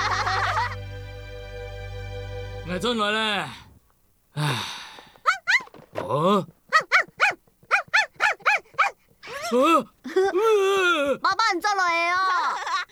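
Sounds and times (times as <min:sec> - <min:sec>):
laughter: 0:00.0 - 0:00.8
speech: 0:02.7 - 0:03.6, 0:04.4 - 0:04.8, 0:06.1 - 0:06.6, 0:09.5 - 0:12.7
cartoon dog barking and yelping in a Doraemon animated film: 0:06.7 - 0:09.0.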